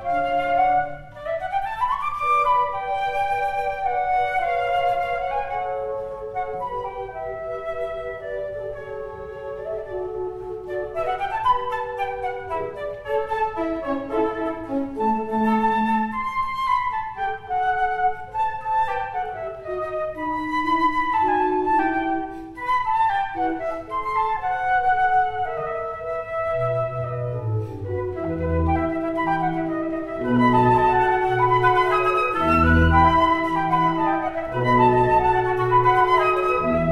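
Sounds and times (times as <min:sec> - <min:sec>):
concerto for two flutes and orchestra: 0:00.0 - 0:36.9.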